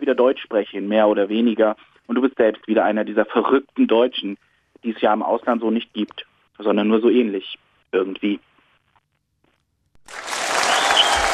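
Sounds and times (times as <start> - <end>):
speech: 0.1 - 8.5
studio audience applause on a German-language show: 10.0 - 11.3.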